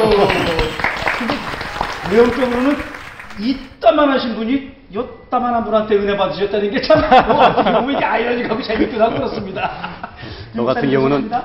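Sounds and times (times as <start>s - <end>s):
laughter: 0.0s - 3.5s, 6.8s - 10.4s
audience applause: 0.0s - 3.8s
speech: 2.1s - 11.4s.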